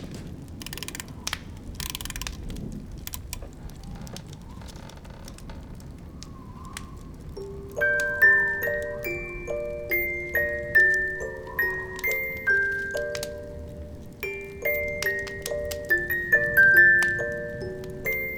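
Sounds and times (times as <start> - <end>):
music box: 0.7 - 1.1, 1.8 - 2.3, 7.3 - 18.3.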